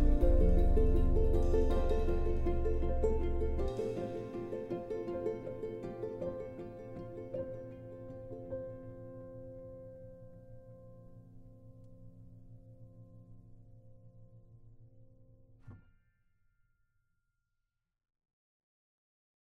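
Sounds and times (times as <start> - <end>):
rhythmic ride cymbal: 0.0 - 5.8
subtle hopeful ukulele: 0.0 - 9.6
piano: 0.0 - 15.7.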